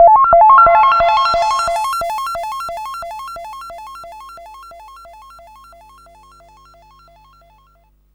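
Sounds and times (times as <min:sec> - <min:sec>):
drum and bass effect: 0:00.0 - 0:04.3.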